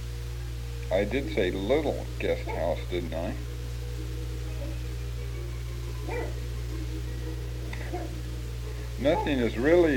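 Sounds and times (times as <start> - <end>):
low hum: 0.0 - 9.9
speech: 0.9 - 3.5, 9.0 - 9.9
poodle barking: 2.4 - 2.8, 6.0 - 6.4, 7.8 - 8.2, 9.0 - 9.8.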